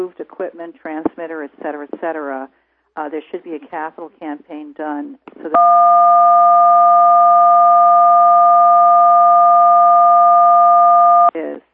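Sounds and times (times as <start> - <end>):
speech: 0.0 - 7.5
loud steady electronic beep from a phone handset: 5.6 - 11.3.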